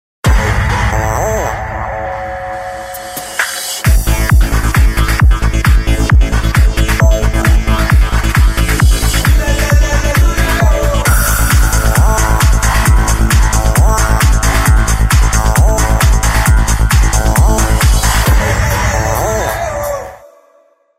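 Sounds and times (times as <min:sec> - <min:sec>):
techno music: 0:00.2 - 0:20.2.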